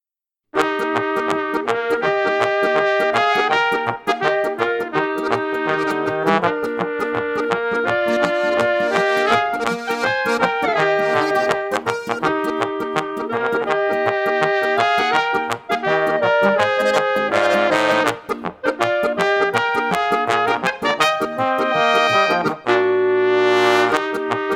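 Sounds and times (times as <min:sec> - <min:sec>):
polka music: 0:00.6 - 0:24.5.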